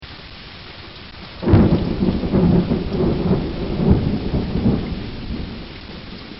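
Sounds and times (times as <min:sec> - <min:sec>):
thunder: 0:01.4 - 0:06.3.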